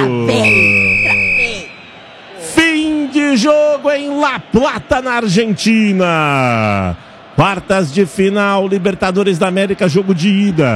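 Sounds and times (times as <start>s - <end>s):
speech: 0.0s - 0.9s, 3.4s - 10.7s
excited commentator speaking: 0.0s - 1.6s, 2.4s - 10.7s
referee's final whistle at a football match in La Plata, Argentina: 0.3s - 2.2s.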